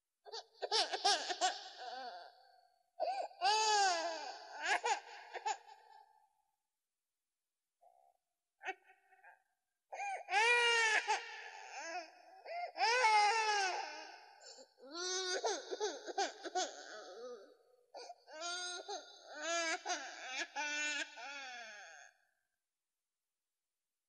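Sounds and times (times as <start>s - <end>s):
baby crying: 0.3s - 2.4s, 3.0s - 5.8s, 10.0s - 22.1s.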